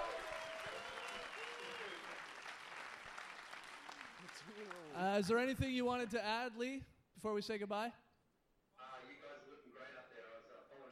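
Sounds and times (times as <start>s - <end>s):
audience cheering: 0.0s - 5.0s
speech: 4.4s - 8.0s.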